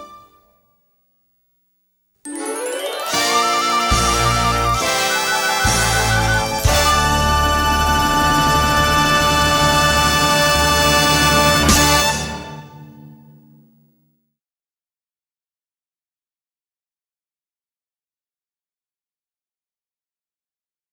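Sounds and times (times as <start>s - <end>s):
instrumental end song: 2.3s - 13.4s.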